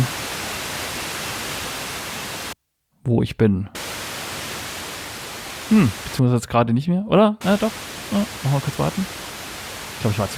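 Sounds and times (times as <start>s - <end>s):
radio receiver static tuned to 90.25 MHz: 0.0s - 2.6s, 3.8s - 6.2s, 7.4s - 10.3s
speech: 3.1s - 3.8s, 5.7s - 9.3s, 10.0s - 10.3s.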